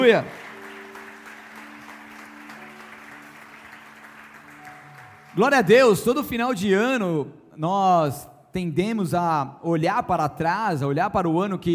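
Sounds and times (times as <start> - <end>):
speech: 0.0 - 0.4, 5.4 - 11.7
large audience applause: 0.0 - 5.7.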